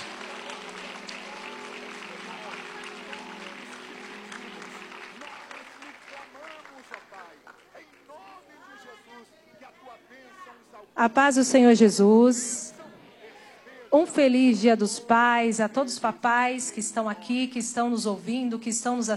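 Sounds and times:
held musical tone: 0.0s - 6.1s
audience clapping: 0.0s - 8.9s
speech: 11.0s - 12.6s, 14.1s - 19.1s.

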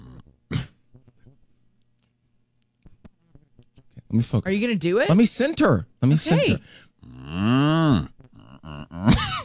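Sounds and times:
speech: 4.1s - 6.8s, 7.4s - 8.1s
person imitating a cow mooing: 7.0s - 9.1s.

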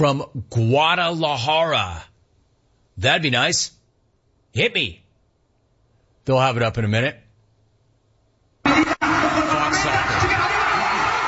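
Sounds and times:
speech: 0.0s - 2.1s, 3.0s - 3.8s, 4.5s - 5.0s, 6.3s - 7.2s
crowd cheering: 8.7s - 11.2s.

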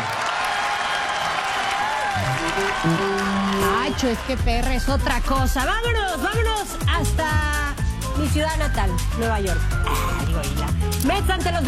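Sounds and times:
applause: 0.0s - 4.9s
speech: 2.6s - 11.6s.

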